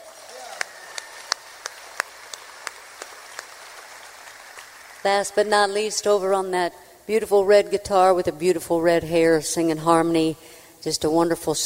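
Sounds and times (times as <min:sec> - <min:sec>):
audience applause: 0:00.0 - 0:05.8
faint hiss: 0:00.0 - 0:11.6
speech: 0:05.0 - 0:11.6.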